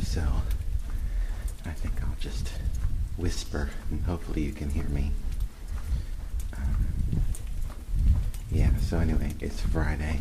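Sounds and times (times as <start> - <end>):
footsteps walking down a long hallway: 0.0 - 10.1
speech: 1.6 - 5.3, 8.5 - 10.1.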